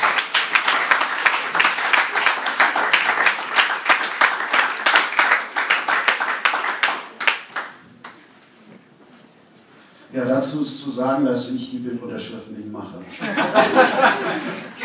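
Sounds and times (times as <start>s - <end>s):
audience applause: 0.0s - 8.2s
speech: 10.4s - 14.6s
laughter: 13.1s - 14.8s.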